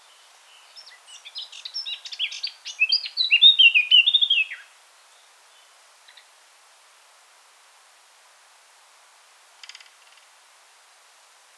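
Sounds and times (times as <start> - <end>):
Eurasian blackcap song: 0.0 - 6.3.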